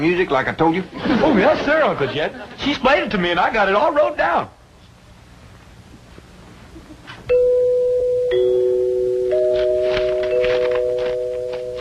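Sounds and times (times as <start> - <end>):
speech: 0.0 - 4.6
laughter: 0.9 - 2.8, 6.6 - 7.2
door chimes ringing: 7.3 - 11.7.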